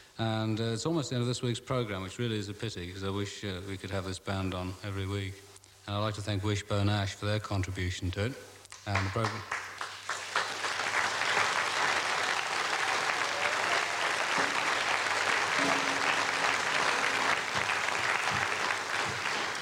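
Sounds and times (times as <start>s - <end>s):
speech: 0.2s - 9.6s
audience applause: 9.0s - 19.6s.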